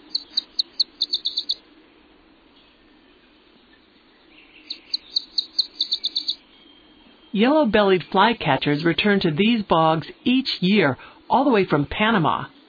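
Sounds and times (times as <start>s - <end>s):
warbler singing in bog: 0.0s - 1.7s, 2.5s - 10.4s
speech: 7.4s - 12.6s.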